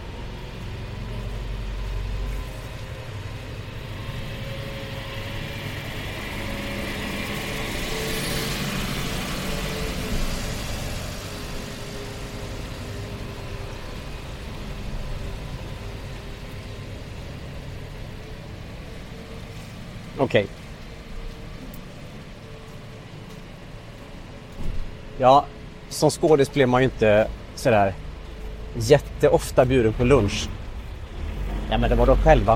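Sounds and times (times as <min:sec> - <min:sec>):
truck passing: 0:00.0 - 0:32.5
speech: 0:20.2 - 0:20.6, 0:25.2 - 0:28.0, 0:28.7 - 0:30.6, 0:31.7 - 0:32.5.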